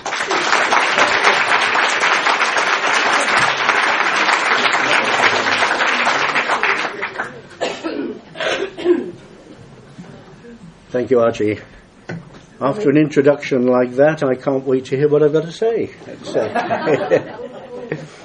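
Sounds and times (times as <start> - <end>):
audience applause at a psychic society meeting: 0.0 - 7.6
laughter: 2.7 - 7.6, 16.1 - 18.2
coughs: 7.5 - 9.3
speech: 11.0 - 11.7, 12.6 - 17.3.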